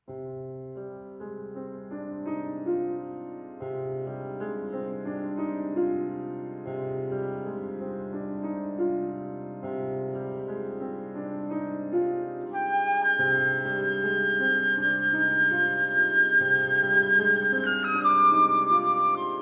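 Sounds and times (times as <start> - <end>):
piano: 0.0 - 19.3
flute: 12.4 - 19.3.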